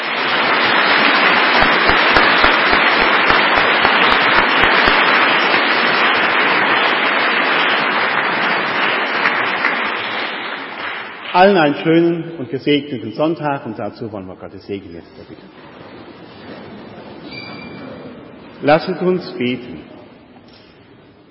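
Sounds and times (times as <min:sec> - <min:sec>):
crowd applauding: 0:00.0 - 0:11.9
speech: 0:11.4 - 0:15.8, 0:18.6 - 0:19.9.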